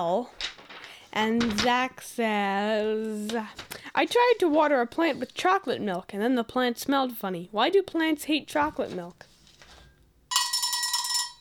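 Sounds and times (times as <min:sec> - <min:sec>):
speech: 0:00.0 - 0:00.4, 0:01.2 - 0:09.3
telephone ringing: 0:10.3 - 0:11.3.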